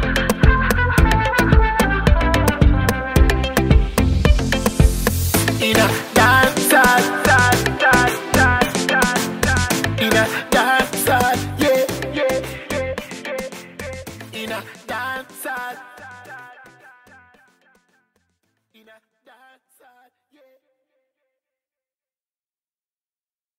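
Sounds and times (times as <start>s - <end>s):
dancehall riddim: 0.0s - 17.9s.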